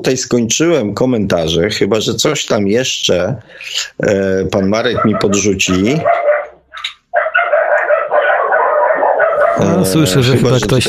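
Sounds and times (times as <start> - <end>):
speech: 0.0 - 6.3, 9.6 - 10.8
dog barking: 4.6 - 10.1.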